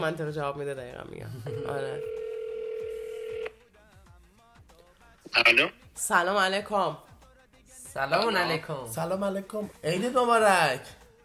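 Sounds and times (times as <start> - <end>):
speech: 0.0 - 2.2, 5.3 - 7.1, 7.9 - 11.0
telephone call tone: 1.5 - 3.5.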